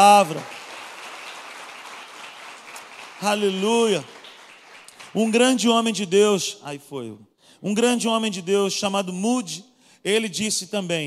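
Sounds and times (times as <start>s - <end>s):
speech: 0.0s - 0.6s, 3.2s - 4.2s, 5.1s - 11.0s
crowd applauding: 0.0s - 5.8s.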